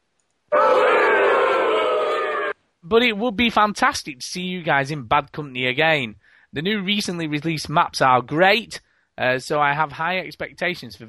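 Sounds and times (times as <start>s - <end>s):
crowd booing: 0.5s - 2.6s
speech: 2.9s - 11.0s.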